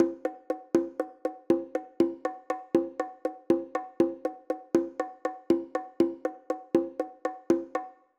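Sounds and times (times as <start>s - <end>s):
bongo drumming pattern: 0.0s - 8.0s.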